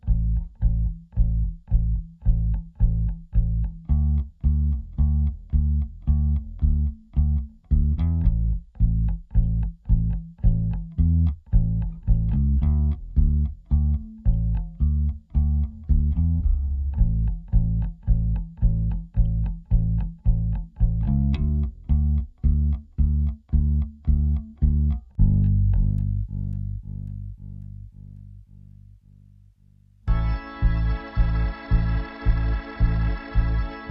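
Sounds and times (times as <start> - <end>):
bass: 0.0 - 33.8
organ: 30.1 - 33.8.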